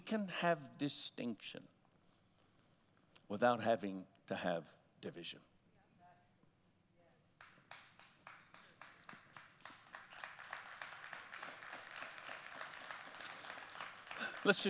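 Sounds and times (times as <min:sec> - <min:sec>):
speech: 0:00.1 - 0:01.7, 0:03.3 - 0:05.5, 0:14.4 - 0:14.6
crowd clapping hands: 0:07.4 - 0:14.6.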